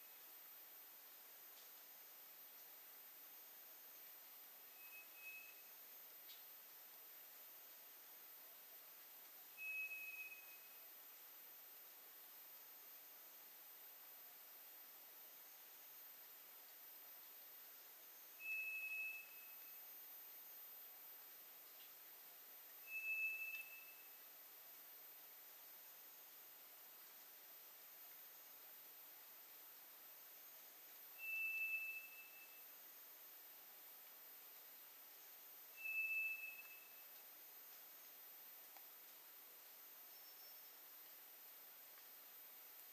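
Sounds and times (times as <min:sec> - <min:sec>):
quiet hiss: 0:00.0 - 0:42.9
White's thrush long whistled note: 0:04.8 - 0:05.7, 0:09.6 - 0:10.8, 0:18.4 - 0:19.8, 0:22.8 - 0:24.2, 0:31.2 - 0:32.7, 0:35.7 - 0:37.1.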